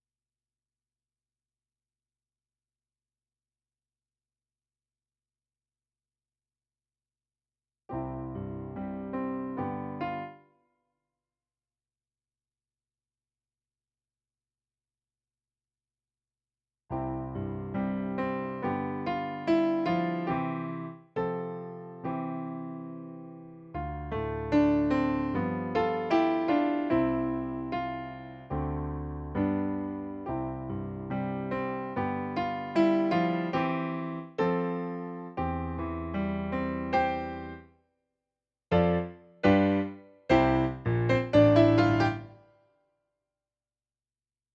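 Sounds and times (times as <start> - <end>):
piano: 7.9 - 10.6, 16.9 - 37.8, 38.7 - 42.6.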